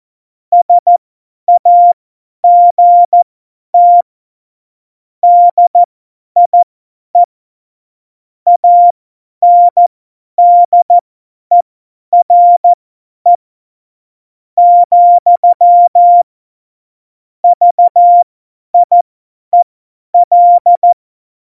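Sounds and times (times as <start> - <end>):
CW Morse code beeps: 0.6 - 3.2, 3.8 - 4.0, 5.2 - 6.6, 8.5 - 11.6, 12.2 - 13.4, 14.6 - 16.2, 17.4 - 18.2, 18.8 - 19.0, 20.2 - 21.4.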